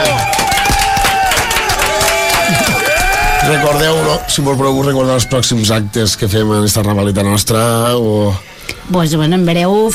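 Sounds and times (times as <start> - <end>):
audience applause: 0.0 - 4.2
speech: 3.7 - 9.9.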